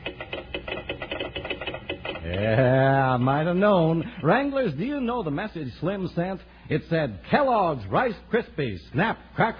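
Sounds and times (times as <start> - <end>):
telegraph key tapping Morse code: 0.0 - 2.4
speech: 2.4 - 9.5.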